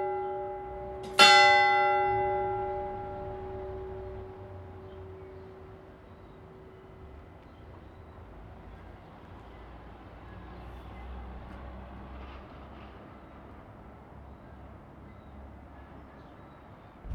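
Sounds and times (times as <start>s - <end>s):
bells ringing in Port Chalmers: 0.0s - 6.8s.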